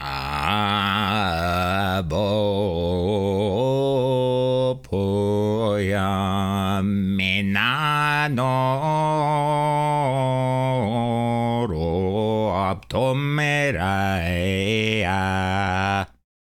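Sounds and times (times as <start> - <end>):
male NPC singing: 0.0 - 16.2.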